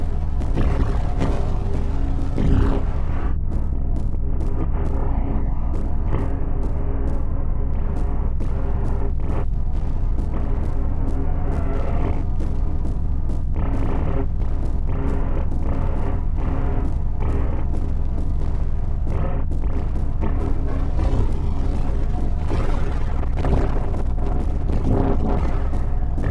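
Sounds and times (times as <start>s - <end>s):
noise session: 0.0s - 26.2s.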